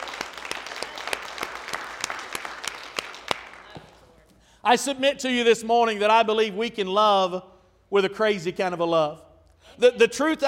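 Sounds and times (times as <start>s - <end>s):
audience clapping hands: 0.0s - 4.0s
speech: 4.6s - 9.2s, 9.8s - 10.4s.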